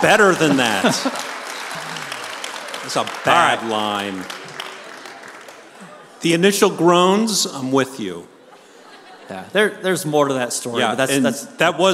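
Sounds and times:
speech: 0.0 - 1.4, 2.8 - 4.4, 6.2 - 8.3, 9.3 - 11.9
crowd clapping: 0.0 - 6.4
laughter: 0.0 - 6.4, 8.1 - 10.0.

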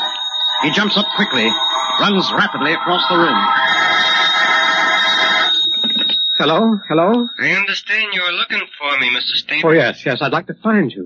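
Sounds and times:
telephone ringing: 0.0 - 8.6
speech: 0.6 - 4.3, 6.4 - 11.0.

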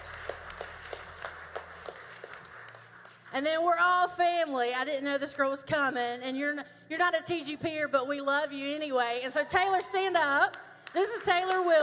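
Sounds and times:
audience applause: 0.0 - 3.3
speech: 3.4 - 11.8.

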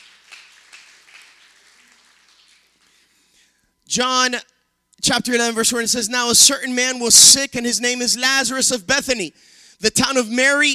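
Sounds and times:
audience applause: 0.0 - 3.0
speech: 3.9 - 10.7.

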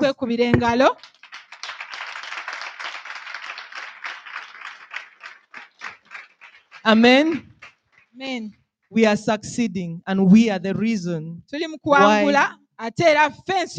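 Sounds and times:
speech: 0.0 - 1.1, 6.8 - 7.5, 8.2 - 13.7
audience clapping: 0.8 - 8.2.

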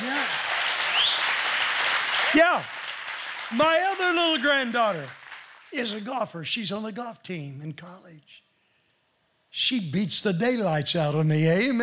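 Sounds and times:
audience clapping: 0.0 - 6.2
speech: 2.3 - 2.8, 3.5 - 8.4, 9.5 - 11.8.

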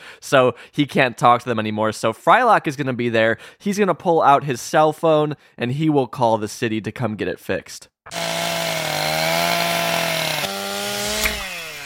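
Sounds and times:
speech: 0.2 - 8.3
chainsaw cutting through a power transformer: 8.1 - 11.8.

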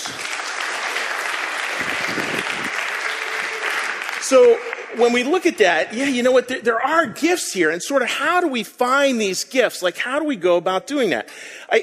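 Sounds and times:
audience applause: 0.0 - 5.8
speech: 4.3 - 11.8.

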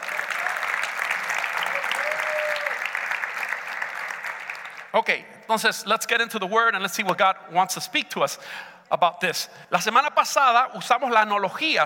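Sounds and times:
audience applause: 0.0 - 4.9
speech: 4.9 - 11.8.

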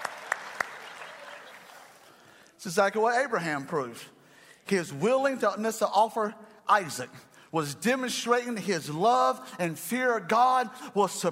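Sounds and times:
hand clapping: 0.0 - 2.0
speech: 2.6 - 11.3.

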